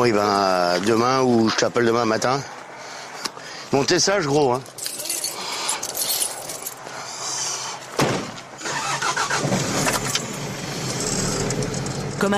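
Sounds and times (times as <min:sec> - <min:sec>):
speech: 0:00.0 - 0:02.6, 0:03.7 - 0:04.8
keys jingling: 0:04.6 - 0:06.9
truck engine cranking and starting: 0:08.6 - 0:12.3.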